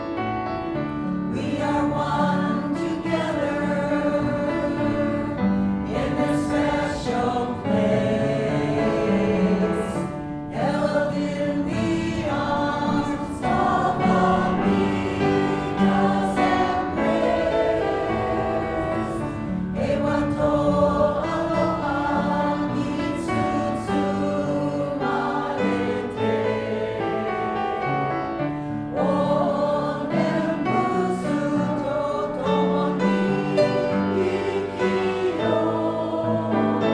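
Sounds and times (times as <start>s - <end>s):
choir singing a song: 0.2s - 36.9s.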